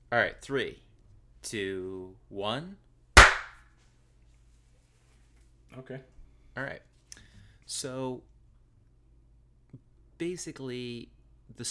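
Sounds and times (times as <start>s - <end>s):
speech: 0.1s - 0.8s, 1.4s - 2.8s, 5.7s - 6.9s, 7.7s - 8.3s, 10.2s - 11.7s
hand clap: 3.2s - 3.6s.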